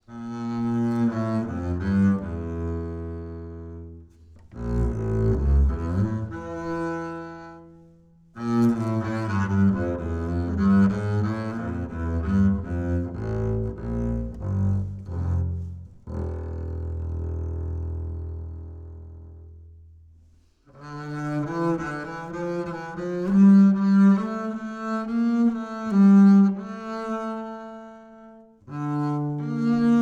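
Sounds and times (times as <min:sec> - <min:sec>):
bowed acoustic bass on 25cm high mid C: 0:00.1 - 0:29.9.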